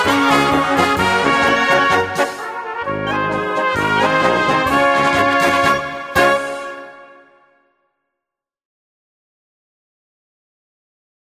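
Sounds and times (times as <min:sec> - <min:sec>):
instrumental music: 0:00.0 - 0:07.9.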